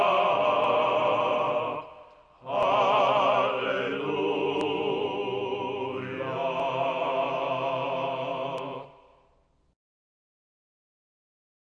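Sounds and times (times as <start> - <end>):
choir singing: 0.0 - 9.2.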